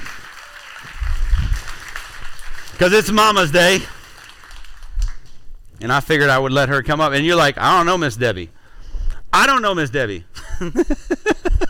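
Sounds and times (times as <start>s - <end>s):
audience applause: 0.0s - 5.4s
speech: 2.8s - 4.0s, 5.8s - 8.6s, 9.4s - 11.6s.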